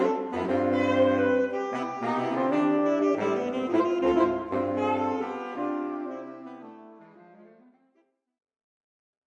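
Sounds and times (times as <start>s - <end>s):
saxophone quartet playing: 0.0s - 7.8s.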